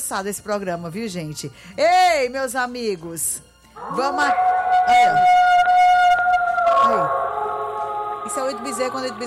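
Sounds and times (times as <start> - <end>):
speech: 0.1 - 5.5, 6.9 - 7.2, 8.3 - 9.2
wolf howl sound effect: 3.8 - 9.2.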